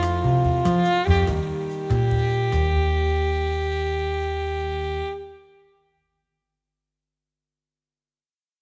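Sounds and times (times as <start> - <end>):
warm bossa nova saxophone: 0.0 - 5.8.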